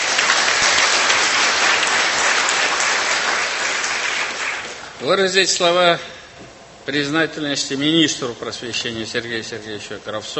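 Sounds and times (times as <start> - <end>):
audience applause: 0.0 - 5.0
speech: 5.0 - 6.1, 6.9 - 10.3.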